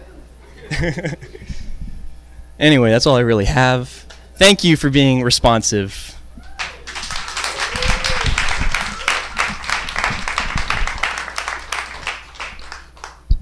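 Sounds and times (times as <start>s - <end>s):
laughter: 0.4s - 1.4s
speech: 0.8s - 1.6s, 2.6s - 6.2s
audience applause: 6.6s - 13.3s.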